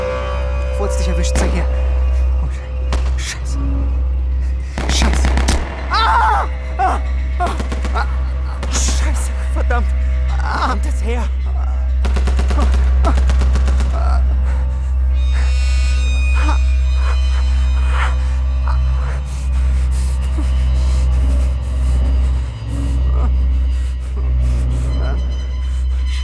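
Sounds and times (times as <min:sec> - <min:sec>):
constant heavy low rumble: 0:00.0 - 0:26.2
speech: 0:00.8 - 0:02.6, 0:10.6 - 0:11.4
old Russian Mosin-Nagant sniper rifle gunfire: 0:04.8 - 0:06.0, 0:07.5 - 0:09.4, 0:12.0 - 0:14.4.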